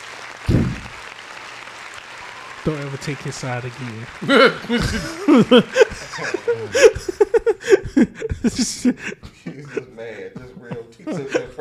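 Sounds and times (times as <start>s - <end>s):
crowd applauding: 0.0s - 8.8s
speech: 2.6s - 11.6s
laughter: 3.8s - 11.6s.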